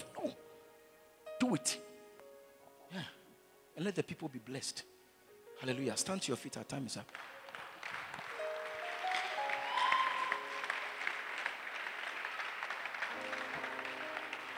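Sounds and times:
speech: 0:01.5 - 0:01.9, 0:02.9 - 0:03.2, 0:03.8 - 0:05.0, 0:05.6 - 0:07.4
audience clapping: 0:06.9 - 0:14.5.

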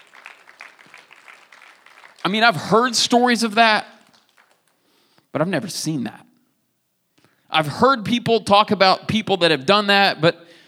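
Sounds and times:
crowd clapping: 0:00.0 - 0:05.0
speech: 0:02.2 - 0:03.9, 0:05.3 - 0:06.2, 0:07.6 - 0:10.6.

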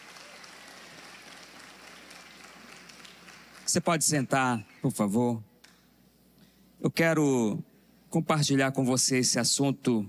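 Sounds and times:
audience applauding: 0:00.0 - 0:04.0
speech: 0:03.7 - 0:05.5, 0:06.9 - 0:10.0.

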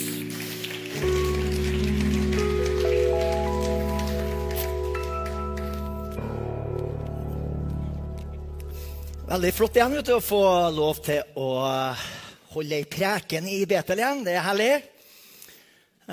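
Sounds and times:
applause for the worship singers: 0:00.0 - 0:10.6
speech: 0:09.3 - 0:14.9.

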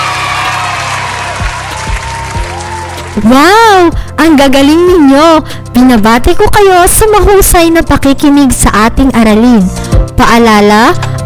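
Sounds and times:
applause in a lesson: 0:00.0 - 0:03.2
speech: 0:03.2 - 0:11.1.

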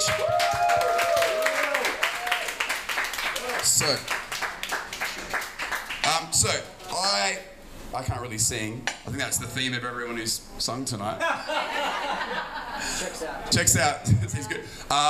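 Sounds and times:
audience applause: 0:00.0 - 0:06.0
speech: 0:03.8 - 0:04.2, 0:07.3 - 0:15.0
laughter: 0:11.2 - 0:13.4.

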